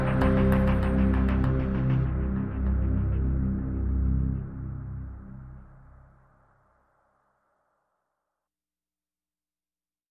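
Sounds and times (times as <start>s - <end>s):
synth pads: 0.0s - 7.4s.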